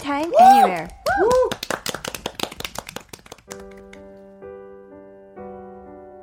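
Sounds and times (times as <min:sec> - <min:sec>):
speech: 0:00.1 - 0:01.3
quick loud clapping: 0:00.1 - 0:04.1
vocal whoop: 0:00.4 - 0:01.6.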